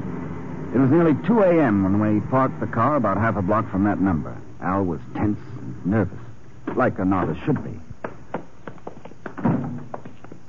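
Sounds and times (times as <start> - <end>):
speech: 0.7 - 7.9
footsteps at night: 5.5 - 10.4.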